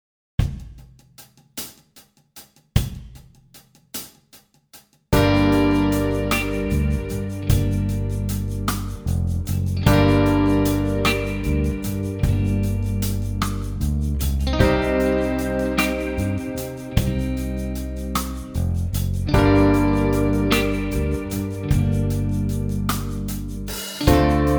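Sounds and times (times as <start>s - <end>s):
guitar: 5.2s - 24.5s.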